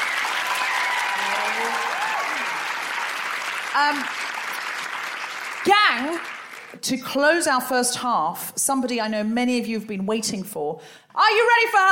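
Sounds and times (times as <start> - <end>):
audience applause: 0.0 - 6.8
speech: 3.8 - 4.3, 5.6 - 11.9.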